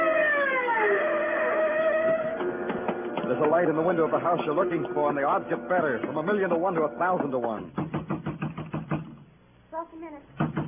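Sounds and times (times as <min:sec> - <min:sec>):
siren: 0:00.0 - 0:02.8
speech: 0:03.3 - 0:07.8, 0:10.0 - 0:10.5.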